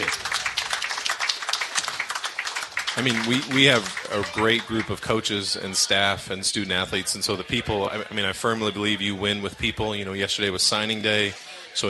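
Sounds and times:
applause: 0:00.0 - 0:05.4
speech: 0:03.0 - 0:11.8.

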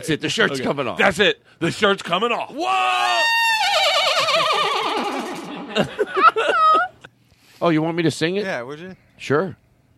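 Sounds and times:
speech: 0:00.0 - 0:05.2, 0:05.8 - 0:06.6, 0:07.6 - 0:09.6
person imitating a horse whinny: 0:02.8 - 0:05.7
laughter: 0:03.8 - 0:07.1.

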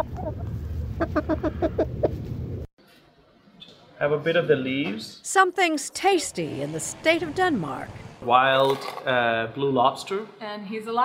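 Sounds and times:
chicken clucking: 0:00.0 - 0:02.2
speech: 0:04.0 - 0:11.0.

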